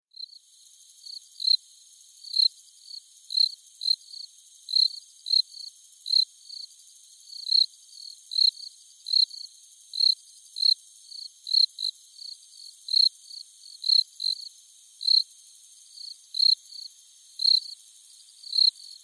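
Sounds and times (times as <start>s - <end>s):
crickets chirping: 0.2s - 19.0s.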